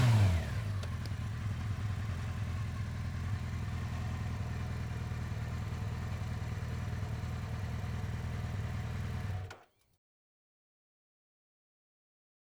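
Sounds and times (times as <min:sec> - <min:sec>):
Honda CBR 900 Fireblade motorcycle engine: 0:00.0 - 0:09.6.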